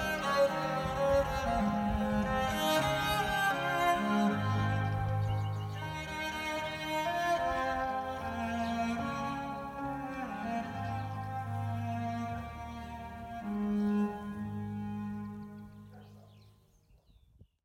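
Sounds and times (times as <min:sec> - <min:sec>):
piano: 0:00.0 - 0:15.9
cello: 0:00.0 - 0:16.5.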